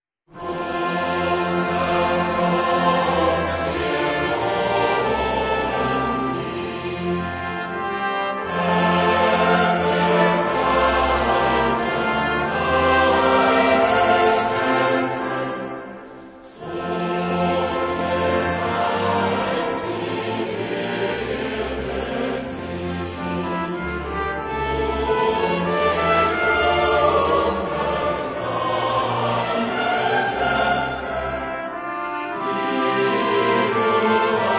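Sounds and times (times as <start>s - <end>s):
parish choir singing a hymn: 0.3s - 34.5s.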